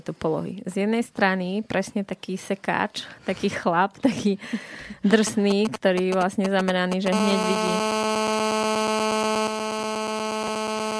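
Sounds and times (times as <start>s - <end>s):
speech: 0.0s - 8.0s
telephone ringing: 6.8s - 10.9s.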